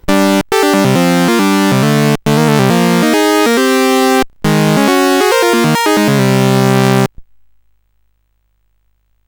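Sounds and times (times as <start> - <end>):
SID CSG8580R5 chip music: 0.0 - 7.1.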